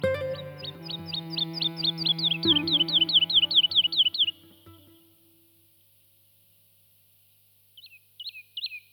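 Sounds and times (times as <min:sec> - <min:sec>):
woodlark singing: 0:00.0 - 0:05.1.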